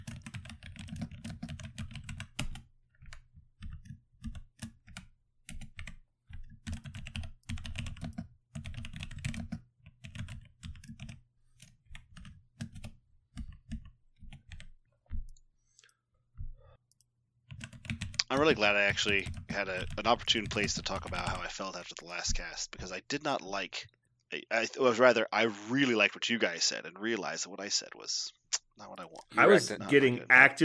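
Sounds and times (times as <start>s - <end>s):
rapid typing on a computer keyboard while writing show notes: 0.0s - 15.9s, 16.9s - 21.5s
speech: 18.3s - 28.4s, 29.0s - 30.6s.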